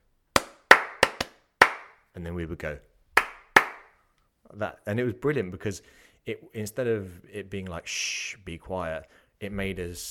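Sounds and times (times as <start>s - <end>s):
rhythmic hand clapping pattern: 0.0s - 2.0s, 3.2s - 4.0s
speech: 2.2s - 2.9s, 4.5s - 10.0s.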